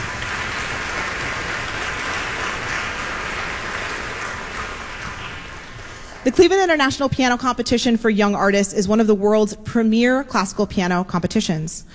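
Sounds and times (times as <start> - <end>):
audience applause: 0.0 - 6.6
speech: 6.2 - 11.9.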